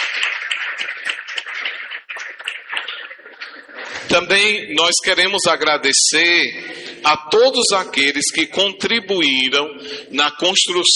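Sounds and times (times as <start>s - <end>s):
audience applauding: 0.0s - 4.1s
speech: 4.2s - 10.9s.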